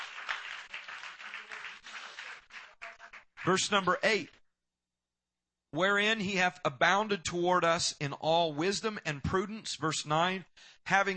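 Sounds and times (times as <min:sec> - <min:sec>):
audience clapping hands: 0:00.0 - 0:04.2
speech: 0:03.4 - 0:04.4, 0:05.7 - 0:11.1.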